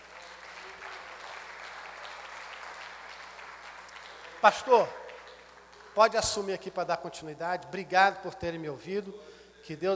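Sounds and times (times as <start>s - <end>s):
audience applause: 0.0s - 6.1s
speech: 4.4s - 5.0s, 6.0s - 9.9s.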